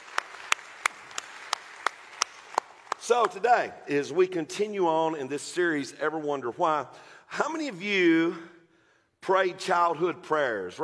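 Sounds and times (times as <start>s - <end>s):
sharp hand claps: 0.0s - 3.4s
speech: 3.1s - 8.5s, 9.3s - 10.8s.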